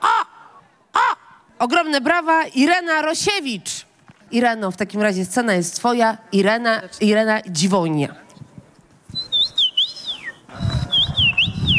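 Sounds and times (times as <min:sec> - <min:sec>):
speech: 0:01.6 - 0:08.2
person whistling bird-like calls: 0:09.1 - 0:11.7.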